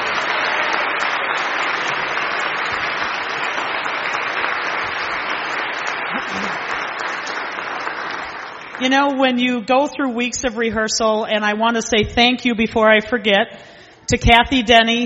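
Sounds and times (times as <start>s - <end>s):
audience applause: 0.0s - 8.8s
speech: 8.8s - 15.0s.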